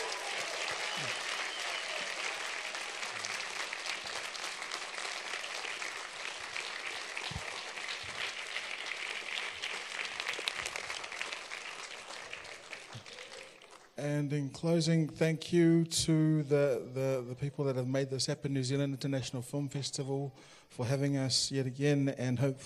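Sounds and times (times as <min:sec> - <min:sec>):
audience applause: 0:00.0 - 0:14.0
speech: 0:14.0 - 0:22.6.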